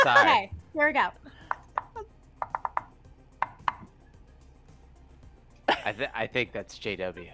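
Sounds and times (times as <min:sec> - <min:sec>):
speech: 0:00.0 - 0:01.3, 0:05.8 - 0:07.3
secret knock on a door in a rhythmic pattern: 0:01.5 - 0:03.9.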